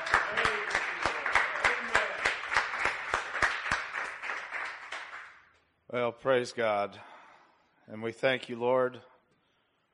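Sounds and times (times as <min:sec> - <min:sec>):
audience clapping in steady rhythm: 0:00.0 - 0:05.7
speech: 0:05.9 - 0:07.1, 0:07.9 - 0:09.1.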